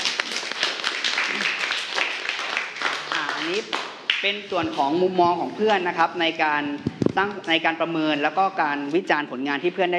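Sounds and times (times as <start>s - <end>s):
classroom clapping for a student: 0.0s - 4.3s
speech: 3.6s - 9.9s.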